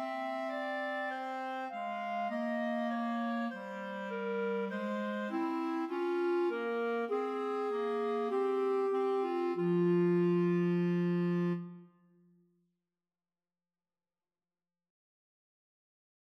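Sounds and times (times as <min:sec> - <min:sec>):
clarinet duet: 0:00.0 - 0:12.0.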